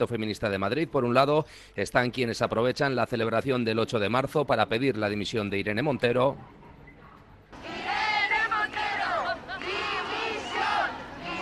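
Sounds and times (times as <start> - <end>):
speech: 0.0 - 6.6
protest crowd shouting: 7.5 - 11.4.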